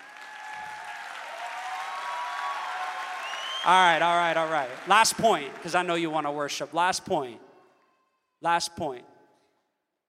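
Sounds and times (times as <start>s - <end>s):
audience clapping: 0.0s - 6.6s
speech: 3.6s - 7.4s, 8.4s - 9.1s.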